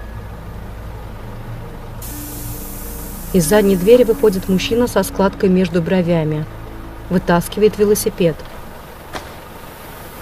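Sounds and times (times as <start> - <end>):
yellow bus rumbling to a stop on an uphill mountain road: 0.0 - 10.1
loud bus air brake hiss: 2.0 - 4.6
speech: 3.3 - 8.5.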